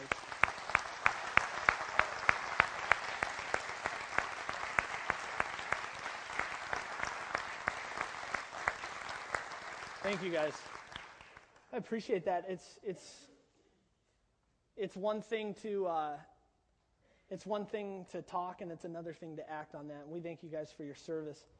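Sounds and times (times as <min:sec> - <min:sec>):
audience applause: 0:00.0 - 0:11.5
speech: 0:10.1 - 0:10.7, 0:11.7 - 0:13.3, 0:14.8 - 0:16.3, 0:17.3 - 0:21.5.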